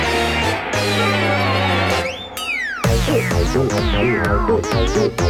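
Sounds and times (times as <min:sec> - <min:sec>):
battle low health warning sound: 0:00.1 - 0:05.1.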